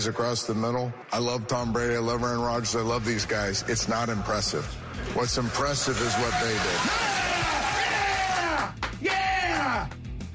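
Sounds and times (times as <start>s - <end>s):
speech: 0.0s - 7.2s
crowd cheering and yelling: 5.0s - 10.0s.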